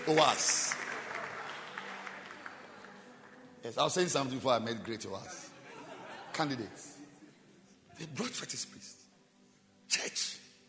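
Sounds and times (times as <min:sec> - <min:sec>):
speech: 0:00.0 - 0:00.7, 0:03.6 - 0:05.5, 0:06.4 - 0:06.9, 0:08.0 - 0:09.0, 0:09.9 - 0:10.3
audience clapping: 0:00.0 - 0:05.3
laughter: 0:05.4 - 0:07.4.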